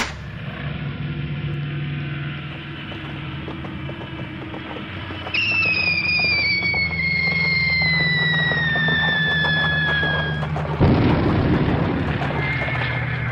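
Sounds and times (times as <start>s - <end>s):
long high whine falling in pitch in an aircraft attack: 0.0s - 13.3s
steady low rumble: 0.0s - 13.3s
aircraft attack explosion on road: 10.8s - 13.3s.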